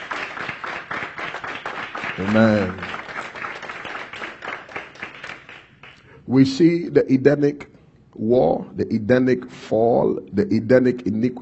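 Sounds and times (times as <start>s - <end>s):
crowd clapping hands in a steady rhythmic beat: 0.0s - 6.2s
speech: 2.2s - 2.8s, 6.3s - 11.3s.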